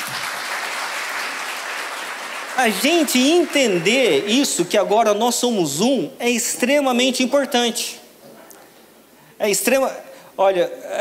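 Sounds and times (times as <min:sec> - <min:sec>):
audience clapping: 0:00.0 - 0:04.6
speech: 0:02.6 - 0:08.0, 0:09.4 - 0:10.9.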